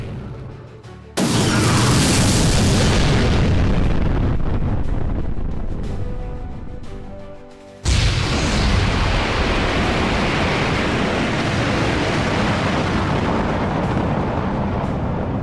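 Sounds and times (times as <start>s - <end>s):
missile launch: 1.2s - 5.6s, 7.9s - 15.3s.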